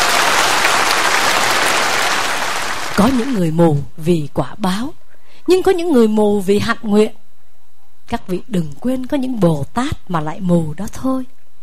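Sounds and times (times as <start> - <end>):
audience applause in thanks to Avalokiteshvara Bodhisattva: 0.0 - 3.4
speech: 3.0 - 7.2, 8.1 - 11.4.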